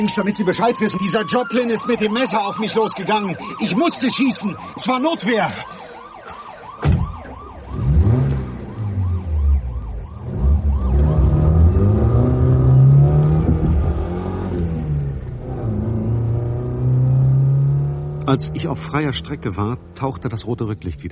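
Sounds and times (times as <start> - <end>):
speech: 0.0 - 6.0, 18.3 - 21.1
wailing siren: 0.0 - 19.0
car engine accelerating: 7.6 - 20.9.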